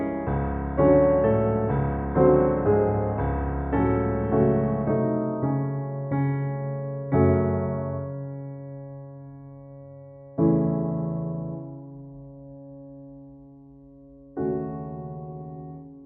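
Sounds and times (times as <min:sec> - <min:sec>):
piano prelude in C minor: 0:00.0 - 0:16.0.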